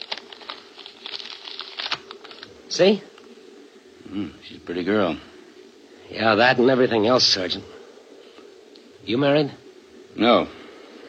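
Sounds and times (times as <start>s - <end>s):
paper crinkling as a wrapped photograph is unwrapped: 0.0s - 3.3s
speech: 2.7s - 3.1s, 4.2s - 5.3s, 6.1s - 7.8s, 9.0s - 9.6s, 10.2s - 10.6s.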